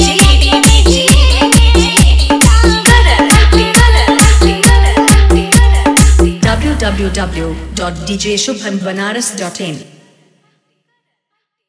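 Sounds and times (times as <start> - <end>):
hard vibrating bass music mix: 0.0 - 8.5.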